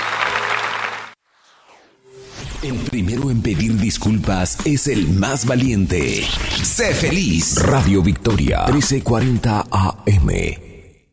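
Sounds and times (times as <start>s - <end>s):
church congregation clapping after a prayer: 0.0s - 1.2s
speech: 2.6s - 10.7s.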